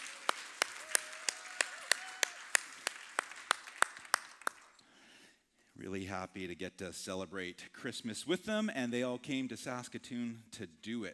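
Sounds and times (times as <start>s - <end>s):
round of applause: 0.0s - 4.8s
speech: 5.8s - 11.1s.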